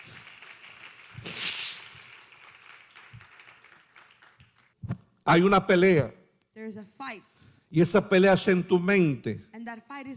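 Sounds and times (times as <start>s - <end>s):
crowd applause: 0.0s - 4.7s
speech: 5.3s - 10.1s.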